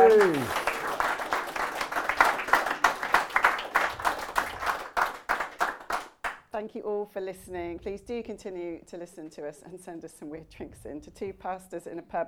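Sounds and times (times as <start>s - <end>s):
falling vocal whoop: 0.0s - 0.7s
podcast hosts clapping: 0.0s - 6.5s
speech: 0.1s - 0.6s, 6.8s - 12.2s.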